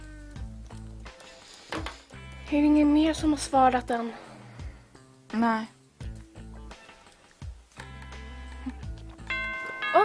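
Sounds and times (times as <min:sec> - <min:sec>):
speech: 0:02.5 - 0:04.3, 0:05.3 - 0:05.8
doorbell chime: 0:09.3 - 0:10.0.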